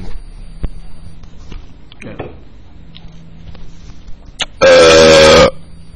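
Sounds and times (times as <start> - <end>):
loud burp: 4.4 - 5.6.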